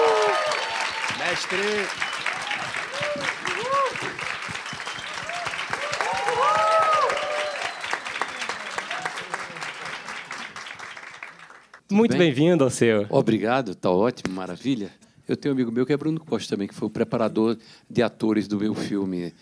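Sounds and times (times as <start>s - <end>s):
cheers and whoops: 0.0s - 9.4s
crowd applauding: 0.0s - 11.8s
speech: 1.3s - 2.1s, 11.9s - 19.4s.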